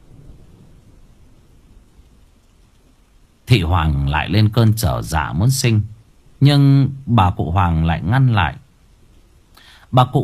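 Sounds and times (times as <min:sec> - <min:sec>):
thunder in a night storm: 0:00.0 - 0:01.8
heavy rain in a night storm: 0:00.0 - 0:10.2
speech: 0:03.5 - 0:08.6, 0:09.9 - 0:10.2.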